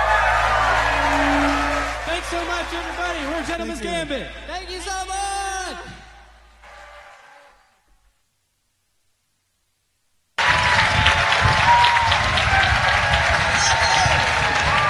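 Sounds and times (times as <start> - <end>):
large happy audience applauding after a band's set on the Creekside stage: 0.0 - 4.4, 10.4 - 14.8
speech: 2.7 - 5.9.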